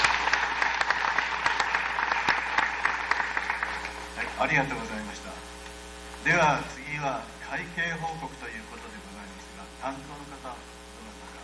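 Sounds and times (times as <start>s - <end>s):
audience applause: 0.0s - 4.8s
speech: 4.4s - 5.4s, 6.2s - 9.0s, 9.8s - 10.8s.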